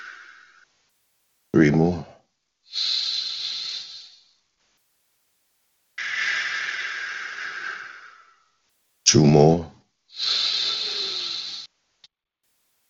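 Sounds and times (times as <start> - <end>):
big deep breath: 0.0 - 0.7, 2.0 - 4.4, 6.0 - 8.6, 10.1 - 11.7
speech: 1.6 - 2.1, 9.1 - 9.8.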